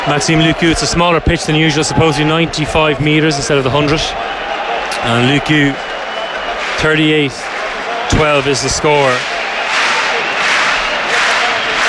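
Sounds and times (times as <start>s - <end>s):
speech: 0.0s - 5.9s, 6.8s - 9.4s
crowd noise: 0.0s - 11.8s
Bordeaux rugby crowd clapping in unison before a place kick: 5.1s - 11.8s.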